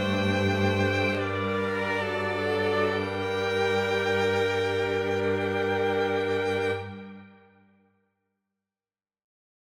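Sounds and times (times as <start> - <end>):
viola quintet playing a canon in G minor: 0.0 - 7.5.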